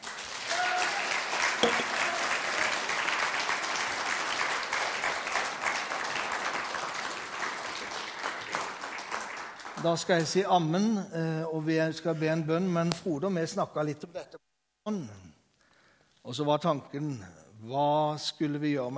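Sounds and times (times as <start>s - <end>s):
audience applause: 0.0s - 10.2s
speech: 1.6s - 2.0s, 9.8s - 14.1s, 14.9s - 15.3s, 16.3s - 18.9s.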